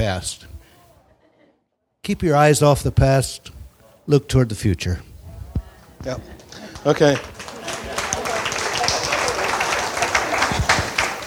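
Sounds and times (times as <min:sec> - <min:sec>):
speech: 0:00.0 - 0:00.5, 0:02.1 - 0:05.1, 0:06.0 - 0:07.4
laughter: 0:02.5 - 0:11.2
audience applause: 0:05.5 - 0:11.2.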